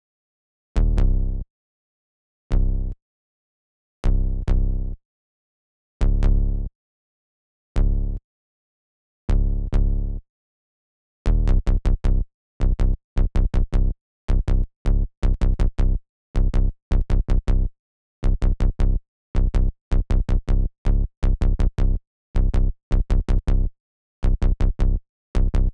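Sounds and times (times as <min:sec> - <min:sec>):
bass: 0:00.8 - 0:01.5, 0:02.5 - 0:03.0, 0:04.0 - 0:05.0, 0:06.0 - 0:06.7, 0:07.7 - 0:08.2, 0:09.3 - 0:10.2, 0:11.2 - 0:25.7.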